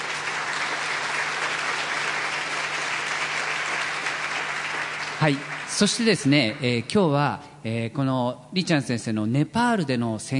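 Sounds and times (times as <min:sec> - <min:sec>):
welcoming applause from an audience: 0:00.0 - 0:06.5
speech: 0:05.2 - 0:10.3.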